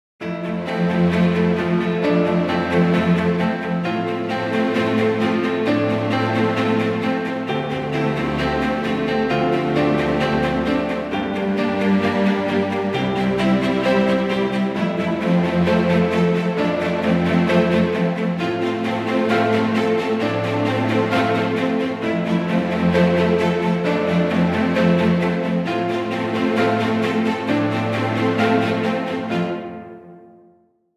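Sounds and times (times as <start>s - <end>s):
inspiring piano background music: 0.2s - 30.4s.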